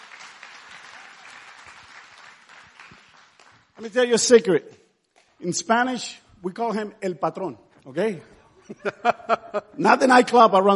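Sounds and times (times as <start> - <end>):
audience applause: 0.0 - 4.1
speech: 3.8 - 4.8, 5.4 - 10.7
laughter: 8.5 - 10.0.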